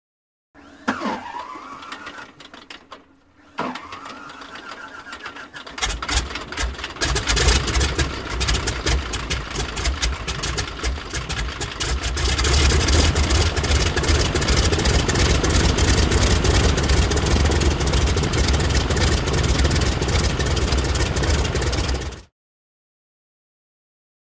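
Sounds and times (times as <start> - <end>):
prop plane motor starting with sporadic irregular popping: 3.6 - 22.3
prop plane propeller spinning and slowing to stop: 3.8 - 22.3.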